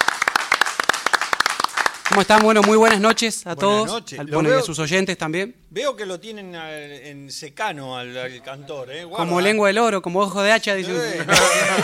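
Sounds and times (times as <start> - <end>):
audience applause: 0.0 - 3.1
speech: 2.1 - 11.8
laughter: 10.9 - 11.8.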